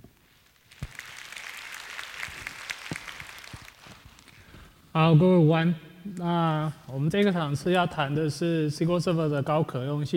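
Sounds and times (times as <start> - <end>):
audience applause welcoming the lecturer: 0.7 - 4.3
speech: 5.0 - 10.1.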